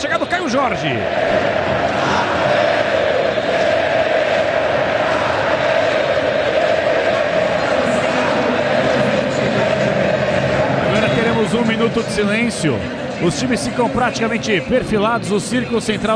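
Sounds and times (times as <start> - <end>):
speech: 0.0 - 1.8, 11.5 - 16.1
stadium crowd chanting a player's name: 1.0 - 11.3.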